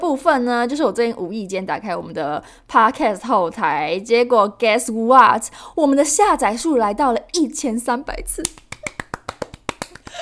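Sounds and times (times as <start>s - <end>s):
speech: 0.1s - 8.6s
hand clapping: 8.4s - 10.1s.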